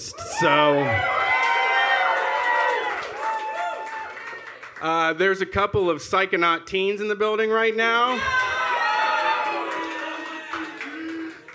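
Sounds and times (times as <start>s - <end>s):
speech: 0.0s - 1.2s, 4.8s - 8.4s
audience cheering and applause: 0.0s - 5.0s, 8.1s - 11.5s.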